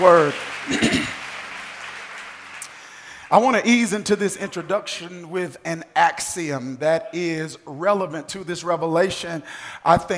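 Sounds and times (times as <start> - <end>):
speech: 0.0 - 1.0, 3.3 - 10.1
audience hands clapping: 0.0 - 3.6.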